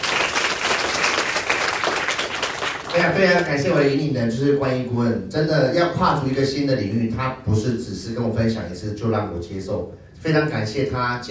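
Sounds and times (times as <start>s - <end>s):
audience applause: 0.0s - 3.6s
speech: 3.0s - 11.2s.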